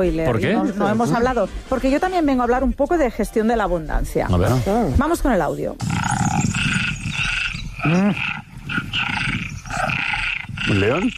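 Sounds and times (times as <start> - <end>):
speech: 0.0 - 6.2, 7.8 - 8.3, 10.7 - 11.1
chorus of tree frogs calling: 5.8 - 11.1.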